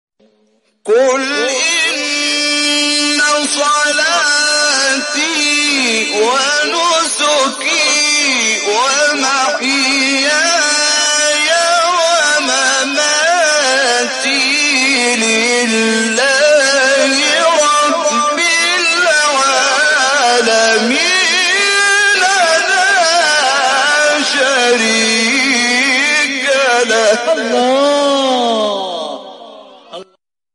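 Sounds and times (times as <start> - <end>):
Quran verse recitation: 0.2 - 30.2.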